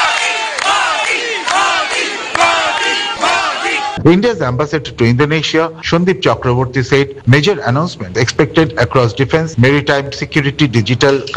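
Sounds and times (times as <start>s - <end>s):
crowd of the Indian diaspora cheering and chanting to welcome Prime Minister Modi in Jakarta: 0.0s - 4.0s
speech: 4.0s - 11.3s.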